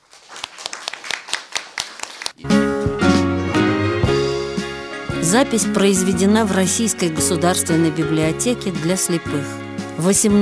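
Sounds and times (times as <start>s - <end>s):
audience clapping: 0.0s - 2.5s
loud sustained music: 2.6s - 7.7s
speech: 5.3s - 10.4s.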